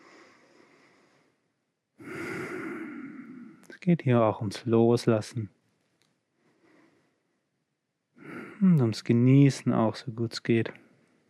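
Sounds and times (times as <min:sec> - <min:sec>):
slow deliberate breathing during a guided relaxation exercise: 0:00.0 - 0:03.7, 0:06.2 - 0:07.5, 0:08.2 - 0:08.8
speech: 0:03.8 - 0:05.6, 0:08.8 - 0:10.8.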